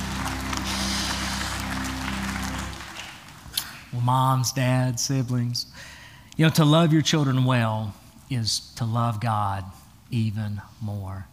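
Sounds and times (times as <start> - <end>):
low sustained hum: 0.0 - 3.5
soft crowd applause: 0.0 - 3.9
speech: 3.9 - 11.3.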